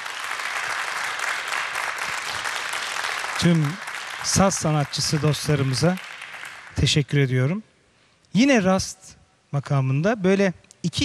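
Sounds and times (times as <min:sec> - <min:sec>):
audience applause for an orchestra at a Turkish classical music concert: 0:00.0 - 0:07.0
speech: 0:03.4 - 0:06.1, 0:06.8 - 0:07.7, 0:08.3 - 0:11.0.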